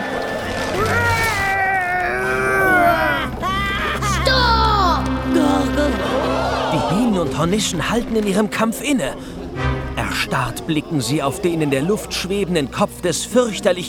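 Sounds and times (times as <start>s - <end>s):
loud bloodcurdling scream: 0.6s - 4.9s
laughter: 2.0s - 7.7s
speech: 7.4s - 9.4s, 10.2s - 13.8s.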